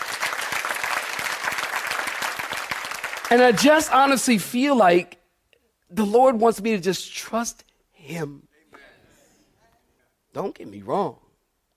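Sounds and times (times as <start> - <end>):
audience clapping: 0.0 - 4.4
speech: 3.3 - 5.2, 5.9 - 8.5, 10.3 - 11.2.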